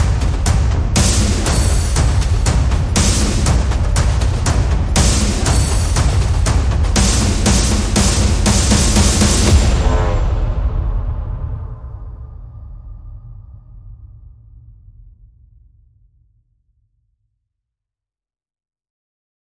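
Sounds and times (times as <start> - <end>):
drums: 0.0 - 13.0.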